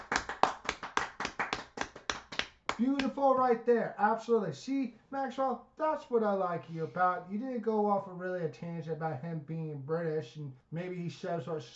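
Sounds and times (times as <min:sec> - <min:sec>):
hands clapping: 0:00.0 - 0:03.2
speech: 0:02.8 - 0:11.7.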